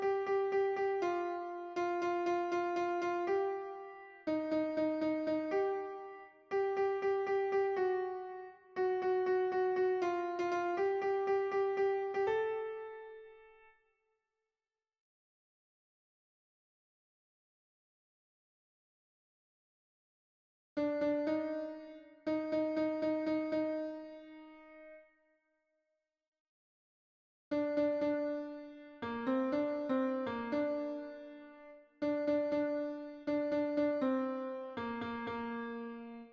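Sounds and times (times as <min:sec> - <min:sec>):
piano: 0:00.0 - 0:13.8, 0:20.8 - 0:25.2, 0:27.5 - 0:36.3.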